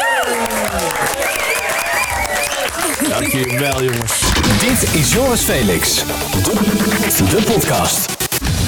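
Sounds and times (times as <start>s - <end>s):
applause: 0.0s - 6.6s
speech: 3.3s - 8.5s.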